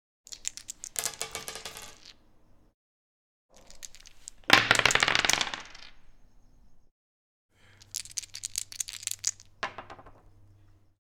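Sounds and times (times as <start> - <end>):
dice: 0.3 - 2.6, 3.5 - 6.2, 7.6 - 10.6.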